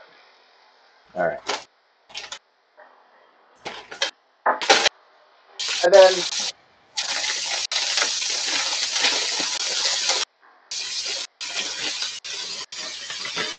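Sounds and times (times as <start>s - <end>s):
speech: 1.1s - 1.5s, 5.8s - 6.6s
vegetables sizzling in a hot pan: 5.6s - 13.5s.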